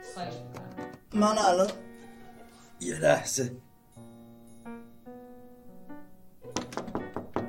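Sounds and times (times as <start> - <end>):
speech: 0.2 - 1.9, 2.8 - 3.7
knocking on a locked door: 6.6 - 7.4.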